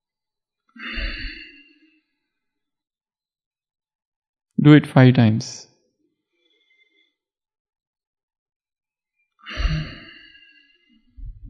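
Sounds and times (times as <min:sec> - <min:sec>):
speech: 0:04.6 - 0:05.7
slow deep breath during a counted deep-breathing exercise: 0:06.4 - 0:07.2, 0:09.5 - 0:11.4.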